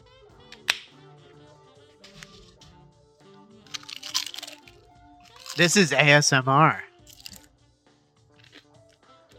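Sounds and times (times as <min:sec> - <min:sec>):
music: 0:00.0 - 0:09.3
crunching on several chips at once: 0:03.7 - 0:05.8, 0:07.1 - 0:07.5, 0:08.4 - 0:09.3
speech: 0:05.6 - 0:06.9.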